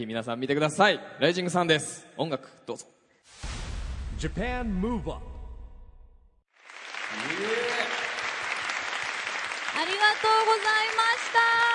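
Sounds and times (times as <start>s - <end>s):
speech: 0.0s - 3.5s, 4.2s - 5.3s, 9.8s - 11.6s
low rumble: 3.4s - 6.4s
audience applause after a dance performance: 6.5s - 11.7s.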